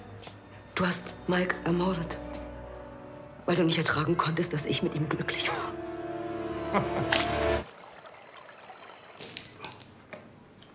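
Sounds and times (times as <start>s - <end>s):
speech: 0.2s - 2.2s, 3.5s - 5.8s, 6.7s - 7.7s
splashes and drips: 7.0s - 10.7s
gin pouring: 7.2s - 10.7s.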